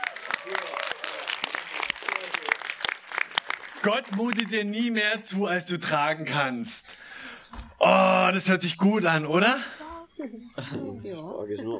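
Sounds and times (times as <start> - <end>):
applause for the actresses: 0.0 - 4.8
speech: 3.8 - 7.1, 7.8 - 11.7.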